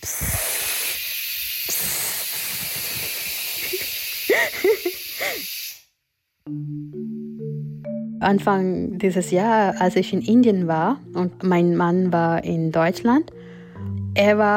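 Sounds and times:
speech: 0.0s - 0.4s, 4.4s - 5.5s, 6.5s - 7.2s, 8.2s - 13.4s, 14.2s - 14.5s
pressure cooker hissing steam: 0.0s - 5.9s
low tonal notes: 6.5s - 14.5s.

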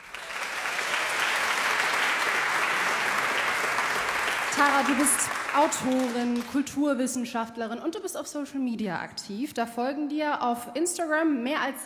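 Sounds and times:
studio audience applauding: 0.0s - 6.7s
speech: 4.6s - 11.8s.

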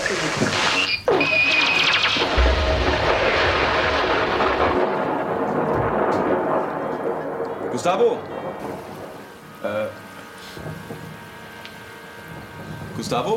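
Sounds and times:
speech: 0.1s - 0.5s, 7.8s - 8.9s, 9.6s - 10.0s, 13.1s - 13.3s
thunderclap from a nearby lightning strike: 1.6s - 11.1s.

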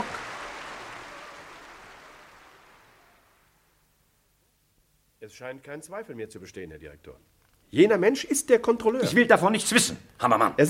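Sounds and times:
audience applause: 0.0s - 3.6s
speech: 5.3s - 10.6s.

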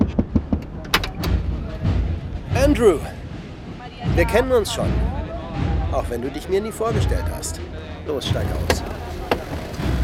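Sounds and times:
pickup truck door opening: 0.1s - 1.5s, 8.3s - 10.0s
speech: 2.8s - 3.2s, 4.2s - 9.0s.

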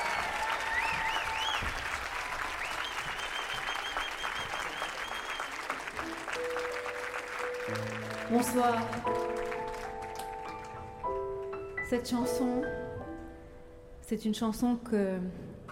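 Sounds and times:
concert audience whistles and cheers: 0.0s - 5.8s
concert audience clapping for a singer: 0.0s - 11.7s
speech: 7.7s - 9.2s, 11.9s - 12.9s, 14.1s - 15.5s.

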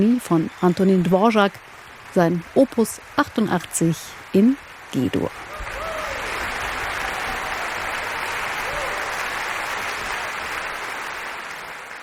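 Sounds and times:
speech: 0.0s - 5.5s
concert hall audience applause: 0.0s - 12.0s.

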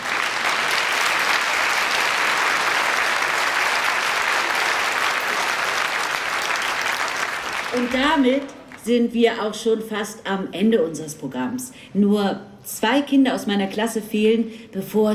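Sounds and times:
audience applause: 0.0s - 8.8s
speech: 7.8s - 15.1s.

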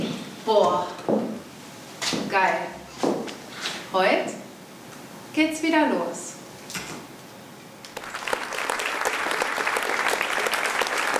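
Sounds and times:
speech: 0.5s - 1.2s, 2.4s - 2.8s, 3.9s - 4.4s, 5.4s - 6.3s
theater audience applause: 7.9s - 11.1s.

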